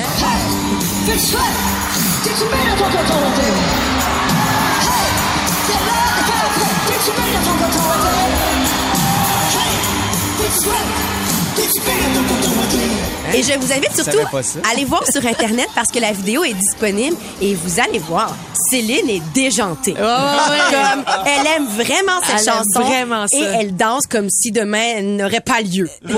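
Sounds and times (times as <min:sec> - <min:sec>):
live concert duet singing over music: 0:00.0 - 0:14.0
crowd cheering and whooping: 0:00.0 - 0:23.6
speech: 0:01.1 - 0:04.0, 0:06.4 - 0:08.8, 0:09.5 - 0:26.1
laughter: 0:10.5 - 0:16.0, 0:19.8 - 0:23.5.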